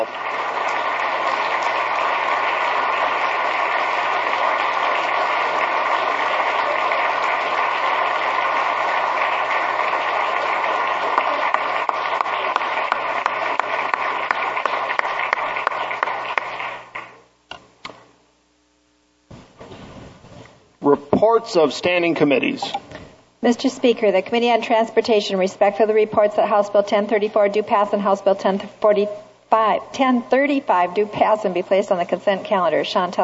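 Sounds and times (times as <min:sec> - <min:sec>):
audience applause: 0:00.0 - 0:17.2
speech: 0:21.4 - 0:22.8, 0:23.4 - 0:33.2.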